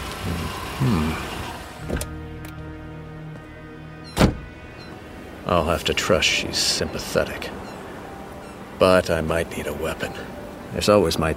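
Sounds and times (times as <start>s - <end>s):
car engine hum pulling up in an empty lot at night: 0.0s - 10.7s
speech: 0.2s - 1.3s, 1.9s - 2.2s, 5.5s - 7.6s, 8.8s - 11.3s
sharp mechanical thunks: 1.8s - 2.6s, 4.1s - 4.6s.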